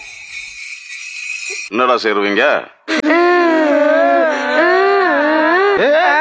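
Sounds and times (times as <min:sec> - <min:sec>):
speech: 0:01.5 - 0:04.0
children crying: 0:02.9 - 0:06.1.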